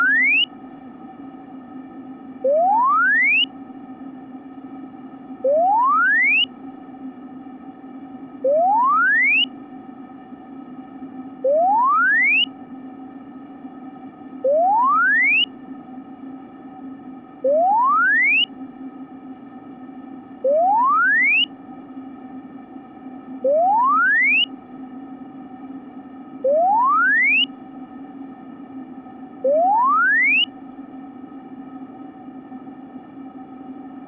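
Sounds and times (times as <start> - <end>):
frequency sweep tone from 500 Hz to 3 kHz: 0.0 - 0.5, 2.4 - 3.5, 5.4 - 6.6, 8.4 - 9.5, 11.4 - 12.5, 14.4 - 15.5, 17.4 - 18.5, 20.4 - 21.5, 23.4 - 24.5, 26.4 - 27.6, 29.4 - 30.5.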